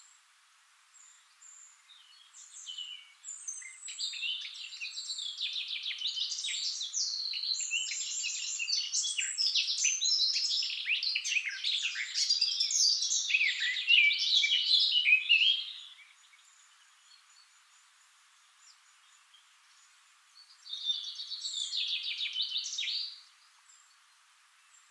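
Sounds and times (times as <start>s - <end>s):
Eurasian blackcap song: 0.0s - 24.8s.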